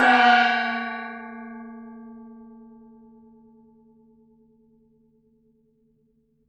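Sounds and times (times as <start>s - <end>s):
cymbal effect: 0.0s - 2.8s.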